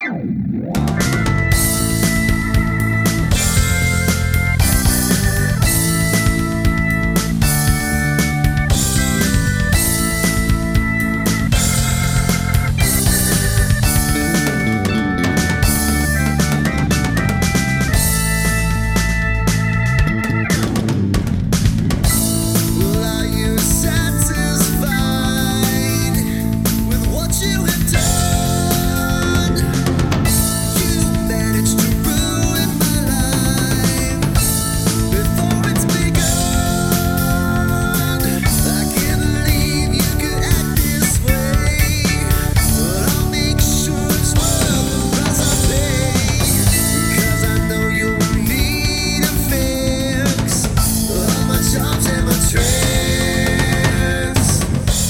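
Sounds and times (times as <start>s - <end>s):
keyboard bass: 0.0s - 55.0s.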